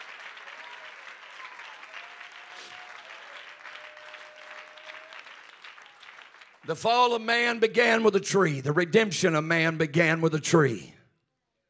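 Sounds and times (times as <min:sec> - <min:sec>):
people clapping: 0:00.0 - 0:07.3
speech: 0:06.7 - 0:10.9.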